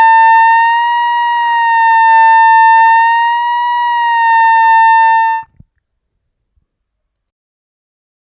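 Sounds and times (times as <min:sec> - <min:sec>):
harmonica overbends bending on fourth fifth and sixth holes: 0:00.0 - 0:05.5.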